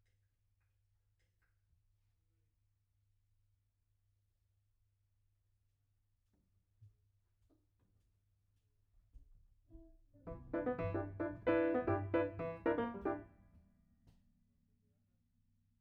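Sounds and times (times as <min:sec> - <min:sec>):
piano note B: 0:10.3 - 0:13.4.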